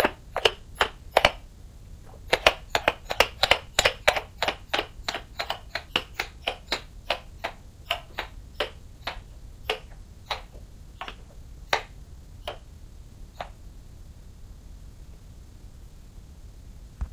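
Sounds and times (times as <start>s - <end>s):
pony hooves clopping: 0.0s - 1.4s, 2.1s - 11.9s.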